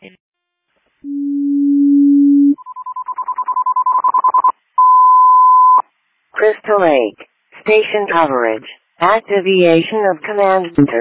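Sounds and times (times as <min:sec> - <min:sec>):
dispatch general alarm tone: 0:01.0 - 0:05.8
speech: 0:06.7 - 0:11.0.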